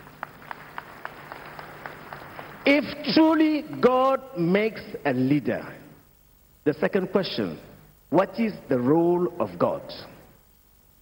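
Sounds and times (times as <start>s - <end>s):
faint audience clapping during a talk: 0.0s - 3.9s
low hum: 0.0s - 11.0s
speech: 2.7s - 5.8s, 6.6s - 10.1s.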